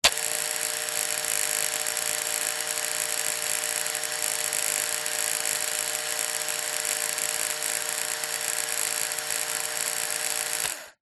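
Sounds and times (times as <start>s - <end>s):
Remington household electric razor running dry: 0.0s - 11.0s.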